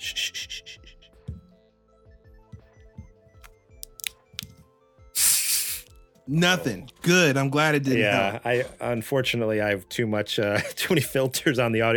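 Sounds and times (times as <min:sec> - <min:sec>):
can of 2023 limited edition artificial marshmallow flavored Pepsi cracked open with fizzing hiss: 0:05.2 - 0:05.9
speech: 0:06.3 - 0:11.9.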